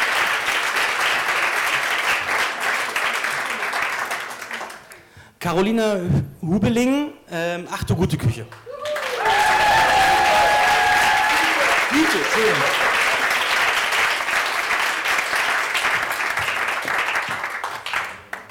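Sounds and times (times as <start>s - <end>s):
crowd applauding: 0.0s - 5.0s, 8.7s - 18.5s
speech: 5.4s - 8.7s, 11.9s - 12.9s
crowd whistles and cheers: 8.7s - 12.7s.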